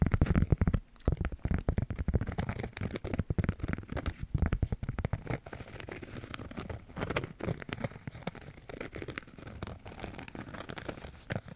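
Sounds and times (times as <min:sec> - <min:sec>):
scratching on wood and cork: 0:00.0 - 0:11.5.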